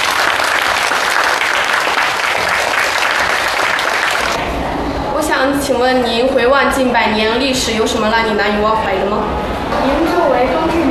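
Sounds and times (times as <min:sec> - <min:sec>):
classroom applause welcoming a guest: 0:00.0 - 0:04.5
speech: 0:05.7 - 0:10.8.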